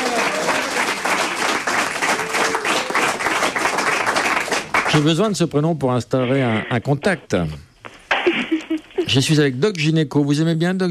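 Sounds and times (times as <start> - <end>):
audience applause: 0.0 - 5.2
speech: 4.9 - 7.7, 9.1 - 10.8.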